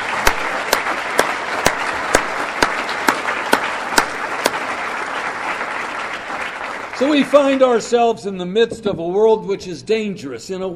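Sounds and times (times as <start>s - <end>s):
audience applause: 0.0s - 8.0s
speech: 7.0s - 10.7s.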